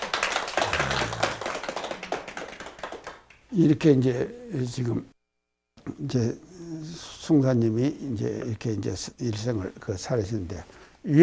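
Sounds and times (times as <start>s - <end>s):
crowd clapping: 0.0s - 3.4s
low murmurs: 0.6s - 1.6s
speech: 3.5s - 5.1s, 5.8s - 11.2s.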